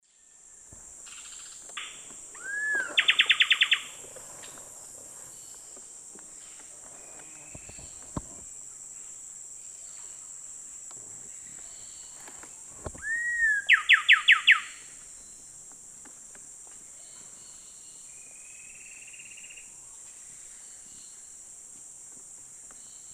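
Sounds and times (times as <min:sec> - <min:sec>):
coraya wren Pheugopedius coraya duet in South America Eastern Lowlands: 0:01.0 - 0:04.0, 0:13.0 - 0:14.8.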